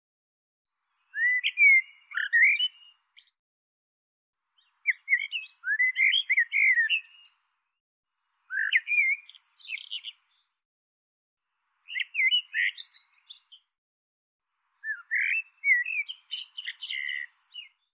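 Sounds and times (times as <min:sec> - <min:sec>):
bird whistling and chirping: 0:01.1 - 0:03.3, 0:04.8 - 0:07.3, 0:08.3 - 0:10.4, 0:11.9 - 0:13.8, 0:14.6 - 0:17.9.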